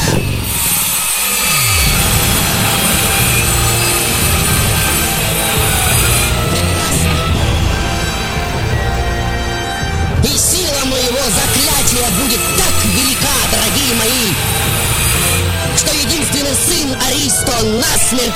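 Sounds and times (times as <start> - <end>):
chainsaw engine droning: 0.0 - 18.3
speech: 16.7 - 18.3.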